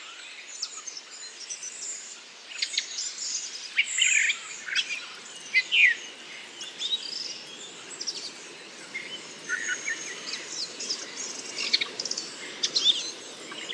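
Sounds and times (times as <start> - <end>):
steady low hiss: 0.5 - 13.7
redwing subsong: 2.8 - 13.7.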